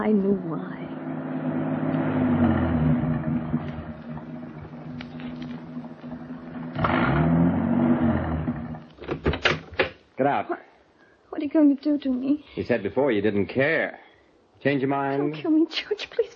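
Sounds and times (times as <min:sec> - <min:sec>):
speech: 0:00.0 - 0:01.0, 0:10.2 - 0:10.7, 0:11.4 - 0:14.0, 0:14.6 - 0:16.3
car engine labouring uphill: 0:00.5 - 0:09.0.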